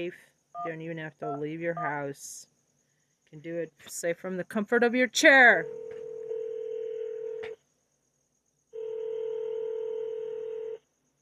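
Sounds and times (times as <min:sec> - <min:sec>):
speech: 0:00.0 - 0:02.5, 0:03.3 - 0:06.2
long steady electronic telephone line tones: 0:05.6 - 0:07.6, 0:08.7 - 0:10.8.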